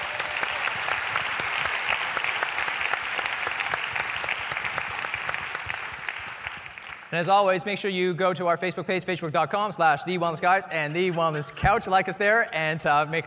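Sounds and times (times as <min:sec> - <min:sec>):
round of applause: 0:00.0 - 0:07.2
speech: 0:07.1 - 0:13.2.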